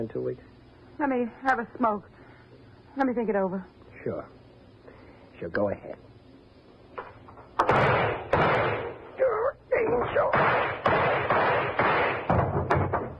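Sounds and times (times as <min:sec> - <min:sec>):
speech: 0:00.0 - 0:02.2, 0:03.0 - 0:04.4, 0:05.4 - 0:06.1
handgun gunshots fired until empty: 0:07.6 - 0:09.0, 0:10.2 - 0:13.0.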